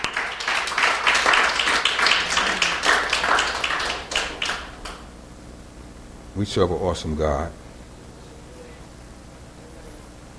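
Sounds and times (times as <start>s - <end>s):
audience praise clapping: 0.0s - 5.1s
speech: 6.4s - 7.6s.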